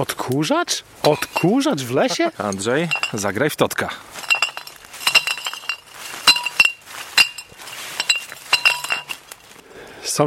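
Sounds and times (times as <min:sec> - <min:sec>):
speech: 0:00.0 - 0:04.2
glass bottles clinking: 0:01.0 - 0:03.4, 0:04.1 - 0:09.5.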